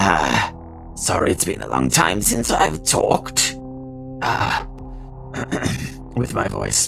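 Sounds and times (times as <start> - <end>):
speech: 0.1 - 3.6, 4.2 - 4.7, 5.5 - 6.8
man clearing his throat: 5.3 - 6.0.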